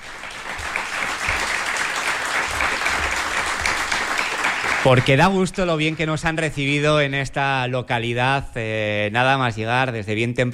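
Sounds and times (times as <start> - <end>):
audience applause: 0.0 - 6.8
speech: 4.8 - 10.5.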